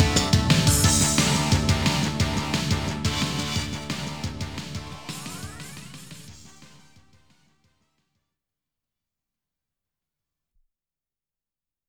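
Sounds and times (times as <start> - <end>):
chase background music: 0.0 - 7.4.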